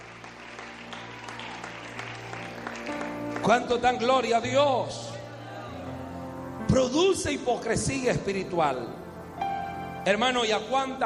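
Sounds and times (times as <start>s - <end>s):
audience applauding: 0.0s - 6.2s
speech: 3.5s - 5.1s, 6.8s - 9.0s, 10.0s - 11.0s.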